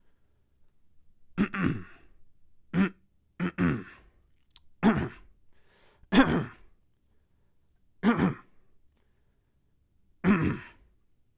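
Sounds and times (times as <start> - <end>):
man clearing throat: 1.4 - 2.1, 2.7 - 4.1, 4.8 - 5.3, 6.1 - 6.7, 8.0 - 8.5, 10.2 - 10.8.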